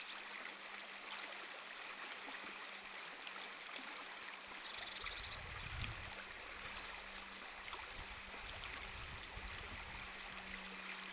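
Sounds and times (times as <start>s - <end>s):
Eurasian blue tit ticking calls: 0.0s - 0.2s
running water: 0.0s - 11.1s.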